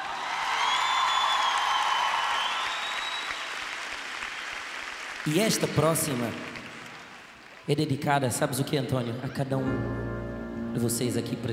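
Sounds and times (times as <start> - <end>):
audience applause: 0.0 - 7.7
speech: 5.2 - 6.5, 7.7 - 10.0, 10.8 - 11.5.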